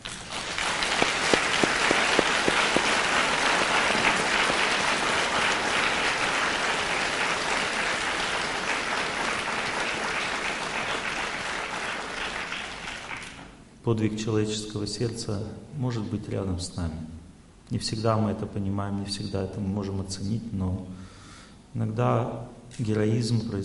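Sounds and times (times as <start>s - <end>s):
audience applauding doctors: 0.0s - 13.5s
speech: 13.9s - 21.1s, 21.7s - 23.6s.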